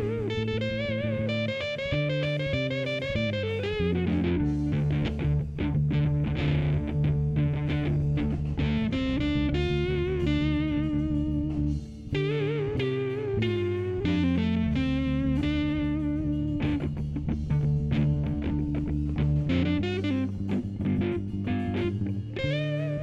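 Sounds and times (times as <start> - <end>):
rock style blues music: 0.0 - 23.0.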